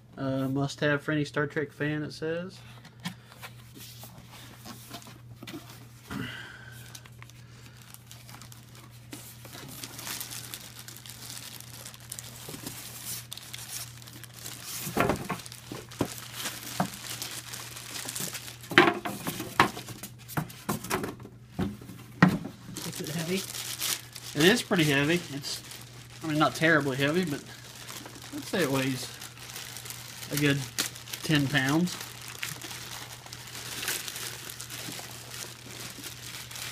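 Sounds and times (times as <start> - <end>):
speech: 0.2 - 2.8, 24.7 - 27.6, 28.3 - 29.2, 30.3 - 32.0
packaging crinkling while unboxing a Star Trek mini fridge: 6.8 - 21.0, 22.5 - 36.7.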